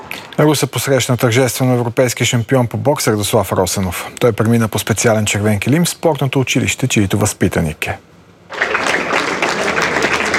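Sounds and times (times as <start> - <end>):
speech: 0.4 - 8.1
applause from students and teachers at a sports school ceremony: 8.5 - 10.3.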